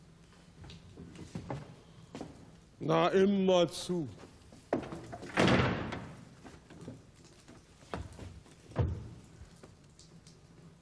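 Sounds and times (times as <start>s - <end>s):
speech: 2.8s - 4.2s
door opening: 4.8s - 6.2s.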